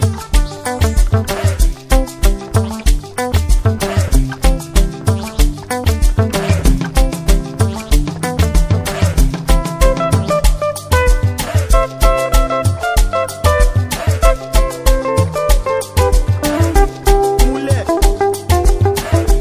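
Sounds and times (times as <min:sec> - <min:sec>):
guitar in dance music: 0:00.0 - 0:19.3
saxophone in dance music: 0:09.5 - 0:19.3.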